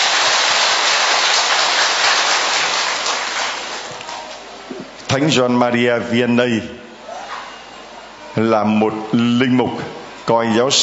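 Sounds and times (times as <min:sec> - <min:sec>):
round of applause: 0:00.0 - 0:04.5
speech: 0:05.2 - 0:06.8, 0:08.4 - 0:10.8.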